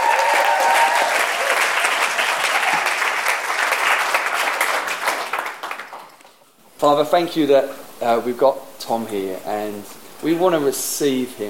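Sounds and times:
audience at a prayer gathering applauding a guest coming on stage: 0.0 - 6.4
speech: 6.8 - 11.4.

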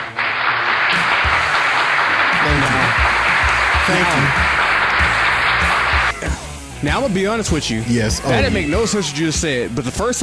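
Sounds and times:
hand clapping: 0.0 - 6.4
speech: 3.9 - 4.6, 6.8 - 10.2.

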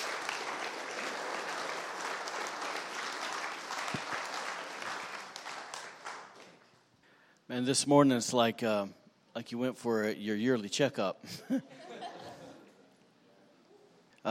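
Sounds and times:
audience hand clapping: 0.0 - 6.9
speech: 7.5 - 11.9
laughter: 11.3 - 13.0.

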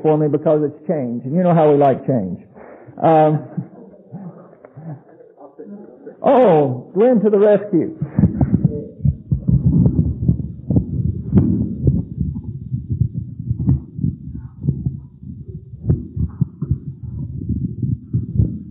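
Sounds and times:
speech: 0.0 - 3.7, 6.2 - 8.2
laughter: 2.6 - 6.8
thunder rumbling: 8.0 - 18.7.

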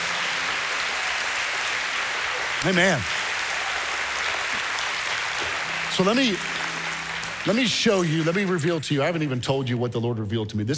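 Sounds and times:
church congregation clapping during a sermon: 0.0 - 9.4
speech: 2.6 - 3.2, 5.4 - 6.6, 7.4 - 10.7.

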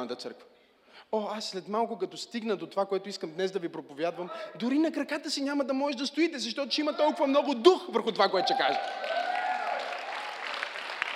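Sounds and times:
speech: 0.0 - 9.2
audience applause: 8.4 - 11.1.

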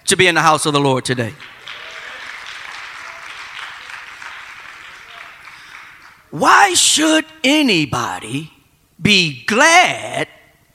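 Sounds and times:
speech: 0.1 - 1.6, 6.3 - 10.4
audience clapping: 1.2 - 6.3.

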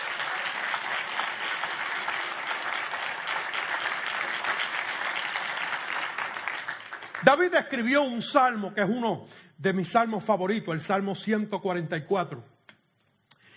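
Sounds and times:
sustained applause from a large audience: 0.0 - 7.4
speech: 7.2 - 12.5.

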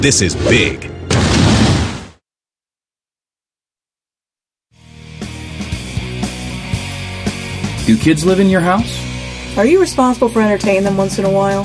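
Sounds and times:
speech: 0.0 - 1.5, 7.9 - 9.0, 9.6 - 11.6
loud explosion in the backyard: 0.3 - 2.2.

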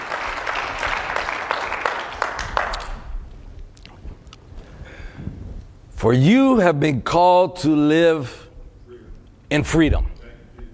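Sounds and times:
crowd clapping: 0.0 - 3.3
speech: 6.0 - 8.4, 9.5 - 10.1.

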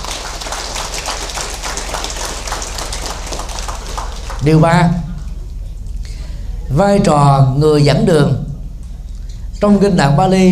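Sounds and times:
loud audience applause: 0.0 - 5.4
speech: 4.4 - 5.0, 6.7 - 8.4, 9.6 - 10.5.

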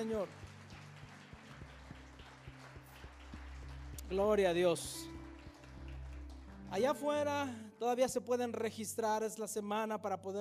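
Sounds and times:
speech: 0.0 - 0.4, 4.1 - 5.2, 6.7 - 10.3
audience applause: 0.0 - 6.9.

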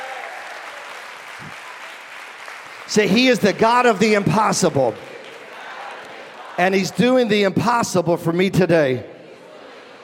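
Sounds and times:
church congregation clapping in praise: 0.0 - 8.0
speech: 2.9 - 5.1, 6.6 - 9.1.

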